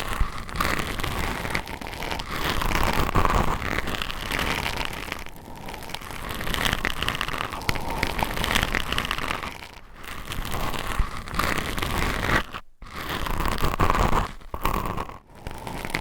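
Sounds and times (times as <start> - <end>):
scratching on a binaural microphone: 0.0 - 15.9.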